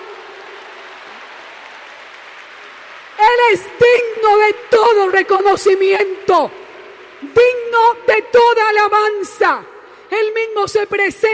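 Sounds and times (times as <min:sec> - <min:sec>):
audience applause: 0:00.0 - 0:07.3
speech: 0:03.4 - 0:06.6, 0:07.3 - 0:11.3.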